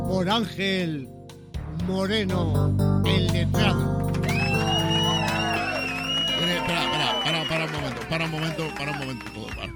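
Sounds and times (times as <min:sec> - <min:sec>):
speech: 0:00.1 - 0:01.2, 0:01.8 - 0:04.1, 0:08.1 - 0:09.7
canned applause sound effect: 0:04.1 - 0:09.7.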